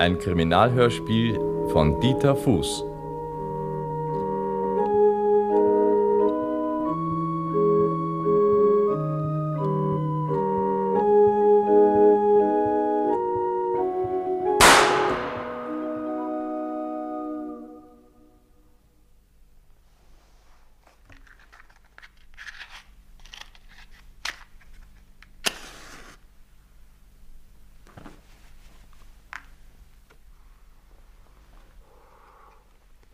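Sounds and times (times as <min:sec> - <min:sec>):
speech: 0:00.0 - 0:02.9
barrel organ melody: 0:00.0 - 0:18.4
gunshot: 0:14.6 - 0:16.1.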